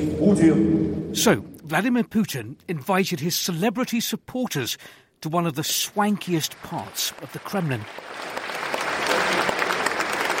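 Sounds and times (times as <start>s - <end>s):
speech: 0.2s - 8.3s
audience applauding in the Kremlin's St. Andrew's Hall: 6.0s - 10.3s.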